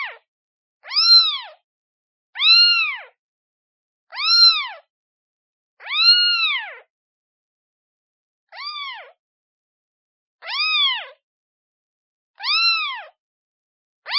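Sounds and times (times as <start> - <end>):
kitten meowing calling for its mother: 0.8 - 1.6, 2.4 - 3.2, 4.1 - 4.9, 5.8 - 6.9, 8.5 - 9.2, 10.4 - 11.2, 12.4 - 13.2.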